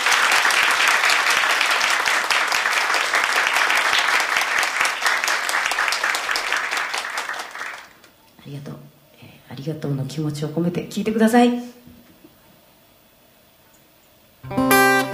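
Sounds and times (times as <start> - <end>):
concert audience applause for a band after their performance: 0.0 - 8.1
speech: 9.6 - 11.7.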